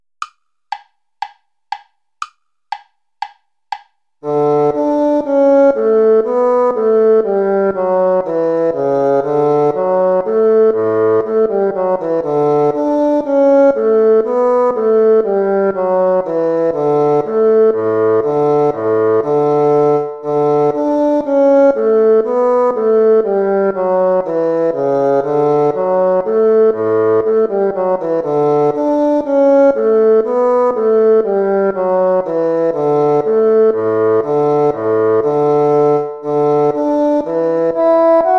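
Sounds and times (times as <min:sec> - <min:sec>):
allegro play-along music: 0:00.2 - 0:38.3.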